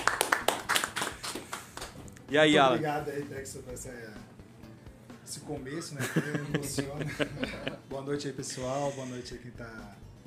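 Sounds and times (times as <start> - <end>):
small audience applause: 0.0 - 1.9
speech: 2.3 - 4.4, 5.3 - 10.1
laughter: 6.0 - 7.8.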